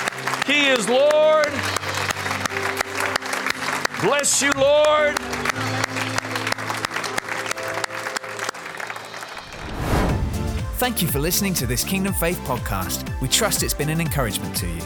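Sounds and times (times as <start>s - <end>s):
audience clapping hands in praise: 0.0s - 10.1s
speech: 0.5s - 1.7s, 4.0s - 5.5s, 10.8s - 14.8s.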